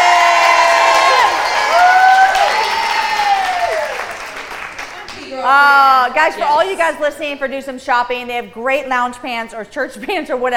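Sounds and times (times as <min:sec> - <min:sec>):
high voices shouting and whooping: 0:00.0 - 0:04.2
audience clapping at a children's fashion show: 0:00.0 - 0:06.3
speech: 0:05.5 - 0:10.5.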